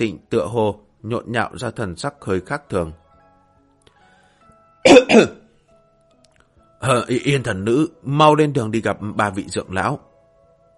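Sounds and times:
speech: 0:00.0 - 0:03.0, 0:04.8 - 0:05.4, 0:06.8 - 0:10.1
man giving a soft throat-clearing cough: 0:04.9 - 0:05.4.

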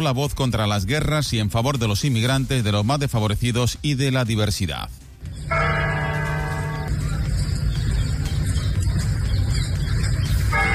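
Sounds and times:
speech: 0:00.0 - 0:05.0
steady low noise: 0:05.2 - 0:10.2
church bells tolling in mourning: 0:05.5 - 0:06.9, 0:10.5 - 0:10.7.

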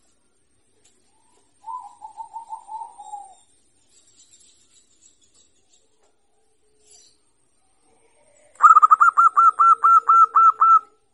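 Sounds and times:
zebra dove cooing: 0:01.2 - 0:03.5, 0:08.2 - 0:11.0.

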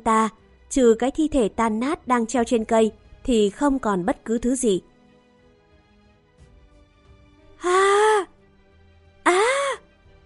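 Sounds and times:
speech: 0:00.0 - 0:04.9
person screaming: 0:09.3 - 0:09.8.

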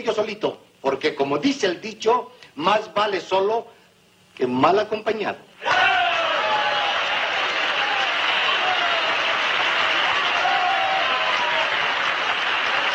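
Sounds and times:
speech: 0:00.0 - 0:03.8, 0:04.4 - 0:05.9
audience applause: 0:05.7 - 0:12.9.

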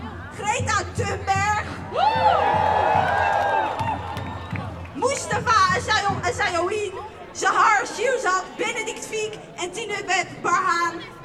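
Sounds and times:
speech: 0:00.4 - 0:02.8, 0:05.9 - 0:11.2
crowd cheering and whooping at a climate march: 0:01.9 - 0:04.9
crowd clapping at a climate march: 0:02.0 - 0:05.5.

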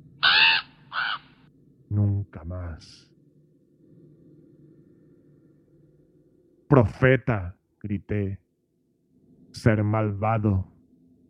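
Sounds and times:
raven cawing: 0:00.2 - 0:01.5
speech: 0:01.9 - 0:03.1, 0:06.7 - 0:08.4, 0:09.6 - 0:10.7.

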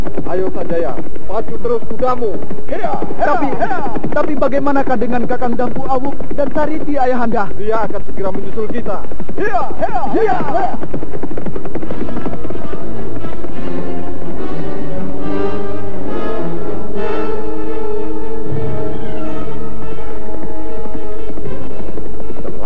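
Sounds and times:
three horses galloping: 0:00.0 - 0:22.6
speech: 0:00.3 - 0:12.1
swelling musical score: 0:12.1 - 0:22.6.

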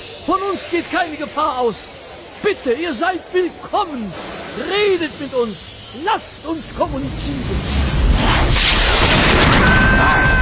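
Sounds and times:
speech: 0:00.3 - 0:07.8
science-fiction heat ray firing from a rotating disc: 0:06.5 - 0:10.4.

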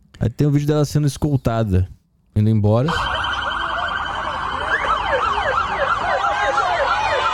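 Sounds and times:
speech: 0:00.2 - 0:03.1
Military Police car siren wailing as the car drives away: 0:02.9 - 0:07.3
crowd cheering and shouting: 0:03.0 - 0:07.3.

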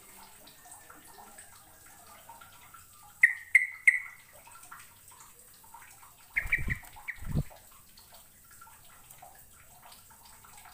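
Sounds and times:
bird chirps: 0:03.2 - 0:04.2, 0:06.4 - 0:07.4.

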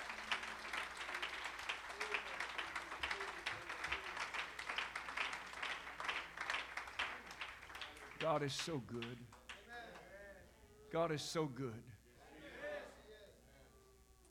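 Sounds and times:
congregation clapping hands at a church service: 0:00.0 - 0:10.1
speech: 0:08.2 - 0:09.4, 0:10.9 - 0:12.0.

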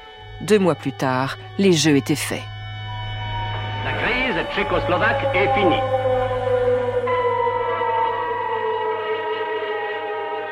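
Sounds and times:
low rumbling hum: 0:00.0 - 0:09.1
sirens wailing summoning workers: 0:00.0 - 0:10.5
speech: 0:00.4 - 0:02.5, 0:04.5 - 0:06.2.

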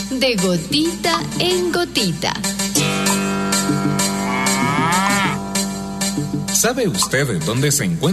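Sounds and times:
speech: 0:00.2 - 0:03.0, 0:06.6 - 0:08.1
cow mooing: 0:02.8 - 0:06.1.

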